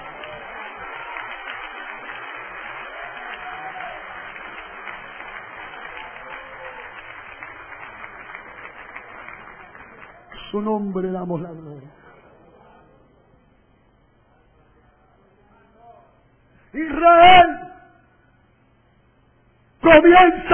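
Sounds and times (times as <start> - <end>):
applause: 0.0 - 10.9
speech: 10.5 - 12.0, 16.8 - 17.5, 19.9 - 20.5.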